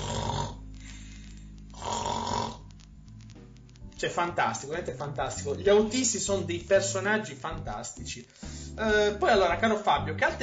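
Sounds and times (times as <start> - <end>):
loud snoring: 0.0 - 0.7, 1.7 - 2.7
speech: 4.0 - 10.4.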